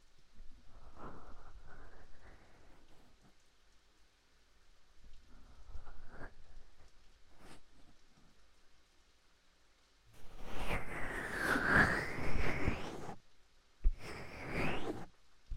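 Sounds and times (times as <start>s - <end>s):
right ear massage: 10.2s - 13.2s, 13.8s - 15.1s.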